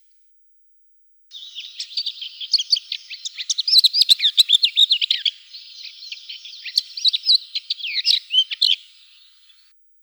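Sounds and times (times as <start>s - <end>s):
lesser whitethroat song: 1.4s - 8.9s.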